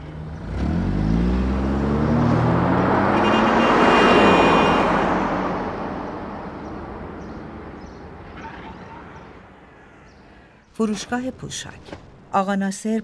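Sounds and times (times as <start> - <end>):
car speeding past on a city street: 0.2 - 9.3
speech: 10.8 - 13.0.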